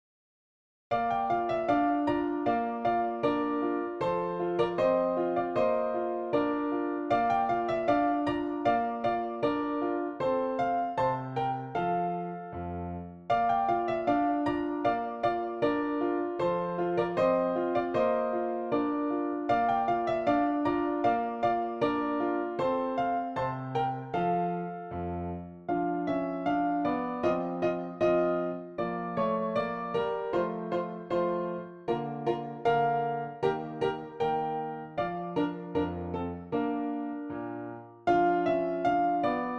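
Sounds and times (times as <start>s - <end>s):
dance music on a PianoTeq Bechstein piano: 0.9s - 39.5s.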